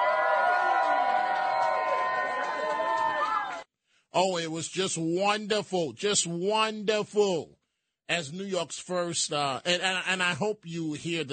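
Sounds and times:
crowd applauding and cheering: 0.0s - 3.7s
speech: 4.2s - 11.3s.

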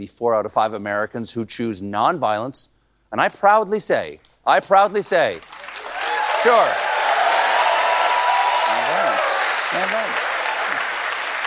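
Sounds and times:
speech: 0.0s - 5.8s, 6.4s - 6.9s
studio audience applause: 5.4s - 11.4s
voices from crowd: 5.9s - 11.4s.

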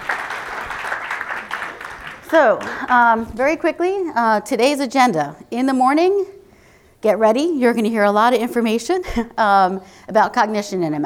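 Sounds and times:
audience applause: 0.0s - 3.0s
speech: 2.3s - 6.4s, 7.0s - 11.0s.

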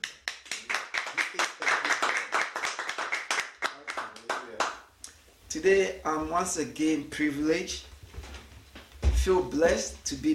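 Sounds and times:
audience clapping: 0.0s - 4.9s
speech: 5.5s - 7.9s, 9.2s - 10.3s.

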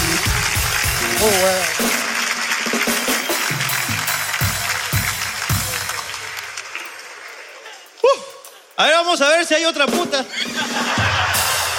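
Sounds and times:
crowd applause: 0.0s - 8.0s, 10.8s - 11.7s
speech: 1.2s - 2.0s, 8.8s - 11.0s
laughter: 7.1s - 8.7s, 10.2s - 11.7s.

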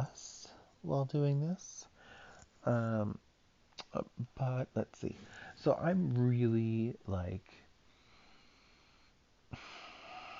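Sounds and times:
speech: 0.8s - 1.9s, 2.6s - 3.2s, 3.9s - 7.6s
person breathing heavily: 2.0s - 2.4s, 5.1s - 5.6s, 7.9s - 10.3s.

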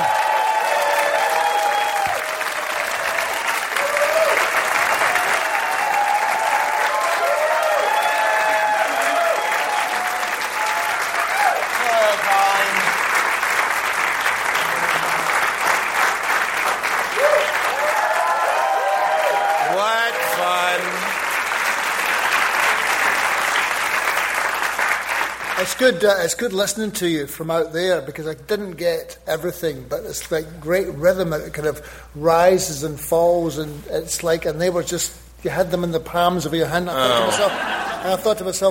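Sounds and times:
scattered audience cheers and whoops: 0.0s - 11.9s, 17.1s - 20.9s
large audience applause for arriving guest: 0.0s - 26.0s
laughter: 14.6s - 15.4s, 37.0s - 38.5s
speech: 25.8s - 38.7s.

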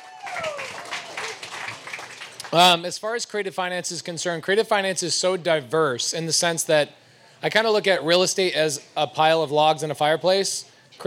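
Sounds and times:
audience applause and clapping: 0.0s - 2.8s
speech: 2.5s - 11.0s.

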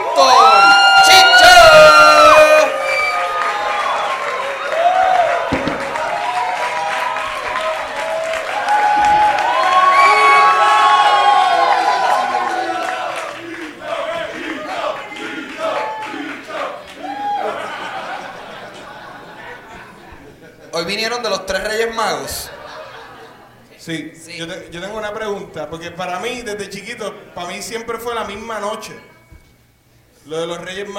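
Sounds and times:
crowd cheering and whooping: 0.0s - 19.7s
crowd clapping: 2.6s - 19.6s
laughter: 17.0s - 20.9s, 22.0s - 23.8s
speech: 21.2s - 22.5s, 23.9s - 29.1s, 30.3s - 30.9s.

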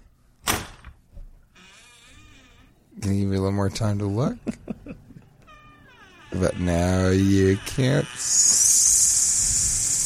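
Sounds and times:
door opening with a rattle: 1.6s - 2.7s, 5.5s - 6.8s
speech: 3.1s - 5.2s, 6.3s - 8.8s
laughter: 4.3s - 5.4s.

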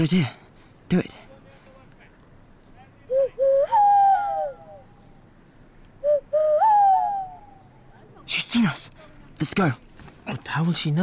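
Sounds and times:
speech: 0.0s - 1.3s, 8.6s - 11.0s
faint hiss: 0.0s - 11.0s
person imitating a bird call: 3.1s - 4.9s, 6.1s - 7.6s.

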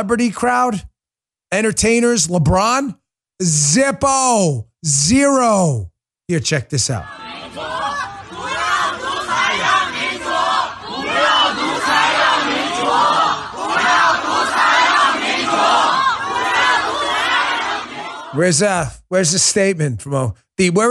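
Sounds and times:
speech: 0.0s - 0.9s, 1.5s - 7.7s, 18.3s - 20.9s
protest crowd shouting and chanting: 6.7s - 18.8s.

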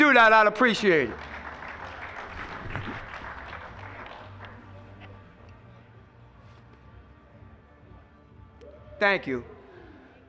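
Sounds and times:
audience applause: 0.0s - 4.8s
speech: 0.1s - 1.3s, 9.0s - 9.5s.

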